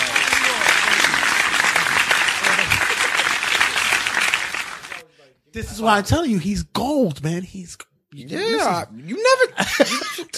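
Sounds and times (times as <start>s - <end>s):
laughter: 0.0s - 4.5s, 9.2s - 10.3s
hands clapping: 0.0s - 5.0s
speech: 5.6s - 10.3s.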